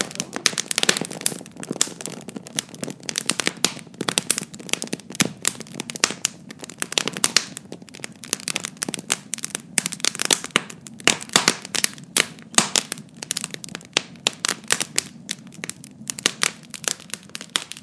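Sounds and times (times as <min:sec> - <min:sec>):
roaring fire: 0:00.0 - 0:17.8.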